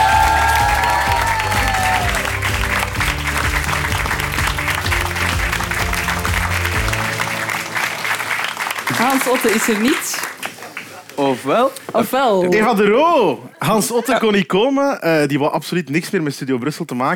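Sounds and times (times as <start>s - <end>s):
studio audience applause: 0.0s - 11.4s
speech: 9.3s - 10.3s, 11.2s - 17.1s.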